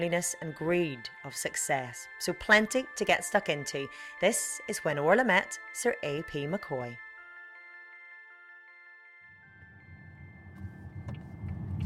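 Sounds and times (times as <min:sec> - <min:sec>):
speech: 0:00.0 - 0:07.0
car driving through the countryside: 0:10.1 - 0:11.8.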